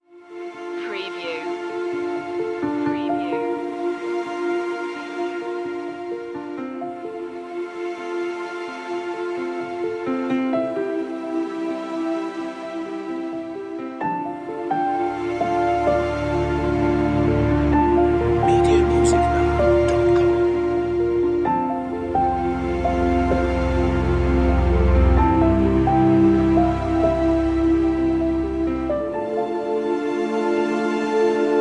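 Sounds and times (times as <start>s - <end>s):
ethereal ambient music: 0.1s - 31.5s.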